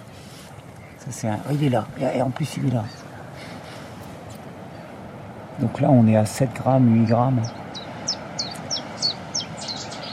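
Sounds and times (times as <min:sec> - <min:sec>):
low steady rumble: 0:00.0 - 0:10.1
Cetti's warbler singing: 0:00.7 - 0:05.1, 0:07.0 - 0:10.1
speech: 0:01.1 - 0:03.0, 0:05.6 - 0:07.6.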